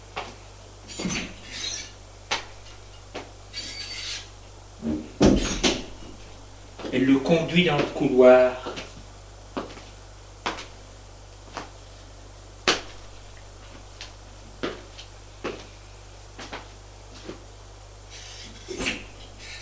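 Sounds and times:
door opening and closing: 0.9 - 2.0, 3.5 - 6.0
speech: 7.0 - 8.7.

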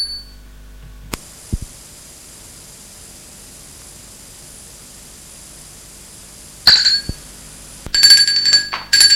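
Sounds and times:
soft thumps: 1.1 - 1.7
doorbell chimes: 7.9 - 9.1.

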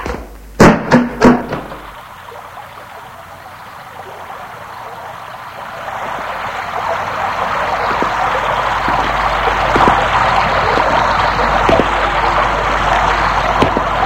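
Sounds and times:
rain falling: 0.0 - 14.0.

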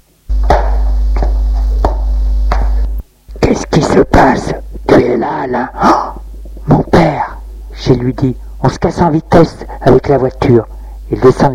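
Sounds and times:
footsteps in the house: 0.3 - 3.1
speech: 3.9 - 6.1, 7.9 - 11.5.

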